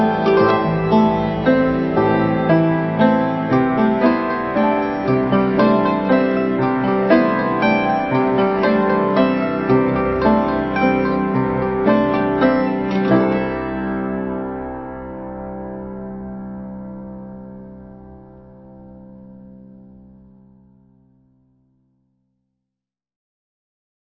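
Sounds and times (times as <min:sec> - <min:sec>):
waltz: 0:00.0 - 0:16.5.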